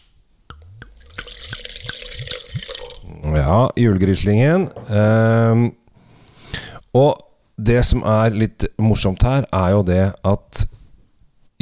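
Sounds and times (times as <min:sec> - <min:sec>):
bottle glugging: 0:00.5 - 0:03.3
wine pouring into a glass: 0:00.5 - 0:03.3
speech: 0:03.3 - 0:05.8, 0:06.9 - 0:10.8.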